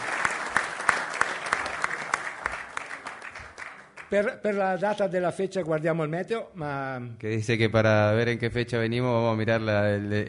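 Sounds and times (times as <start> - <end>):
audience applause: 0.0 - 4.2
speech: 4.1 - 10.2.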